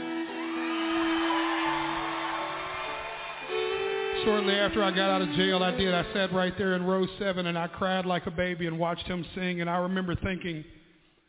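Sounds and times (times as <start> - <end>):
crowd cheering and whooping: 0.0 - 5.6
speech: 4.2 - 10.8.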